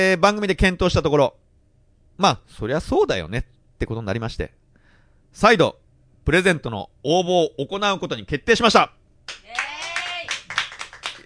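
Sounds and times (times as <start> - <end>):
speech: 0.0 - 1.4, 2.2 - 4.6, 5.3 - 9.6
hand clapping: 9.3 - 11.2
person cheering: 9.4 - 11.2.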